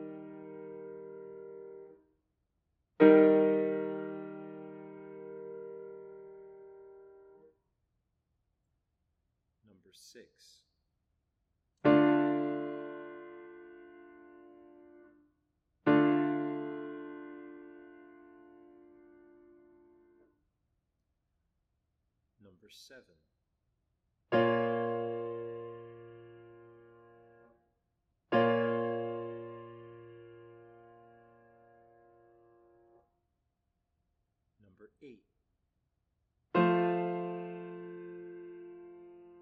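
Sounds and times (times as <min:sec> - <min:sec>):
chords: 0:00.0 - 0:01.9, 0:03.0 - 0:07.4, 0:11.9 - 0:15.1, 0:15.9 - 0:20.2, 0:24.3 - 0:27.4, 0:28.3 - 0:33.0, 0:36.6 - 0:39.3.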